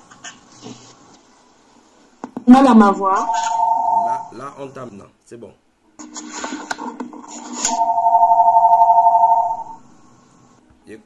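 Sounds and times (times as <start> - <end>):
speech: 2.5 - 3.5, 4.4 - 5.6, 10.9 - 11.0
telephone ringing: 2.5 - 4.3, 7.6 - 9.9.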